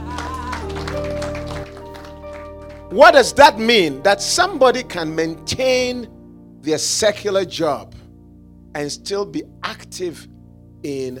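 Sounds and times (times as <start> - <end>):
audience clapping: 0.0 - 3.0
speech: 2.9 - 8.0, 8.7 - 11.1.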